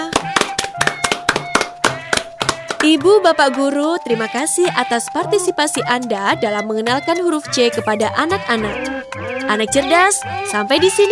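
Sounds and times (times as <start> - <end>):
rhythmic hand claps: 0.0 - 3.3
speech: 2.9 - 11.1.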